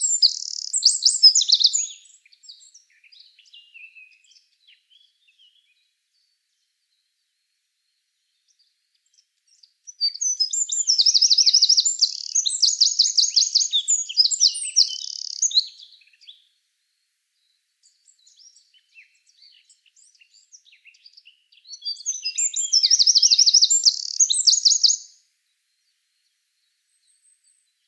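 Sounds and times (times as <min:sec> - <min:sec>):
Eurasian wren singing trills: 0:00.0 - 0:04.3, 0:09.9 - 0:16.4, 0:17.8 - 0:25.2.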